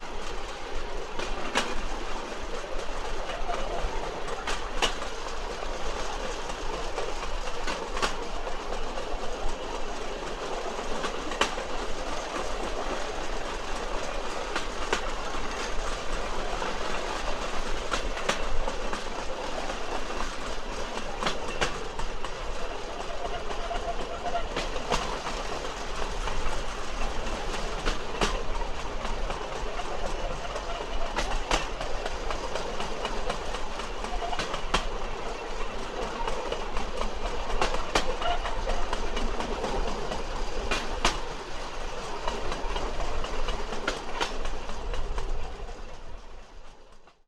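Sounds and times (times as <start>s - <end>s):
rail bike rolling: 0.0s - 47.2s.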